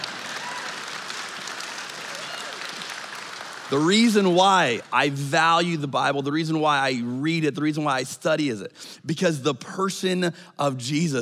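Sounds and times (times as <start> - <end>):
half-hearted audience clapping: 0.0 - 5.6
speech: 3.7 - 11.1.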